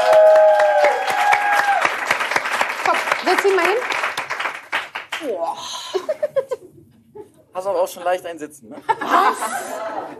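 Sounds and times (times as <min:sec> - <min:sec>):
audience applause for a performer: 0:00.0 - 0:05.3
speech: 0:03.3 - 0:04.0, 0:05.2 - 0:06.2, 0:07.6 - 0:10.1
laughter: 0:08.8 - 0:10.1.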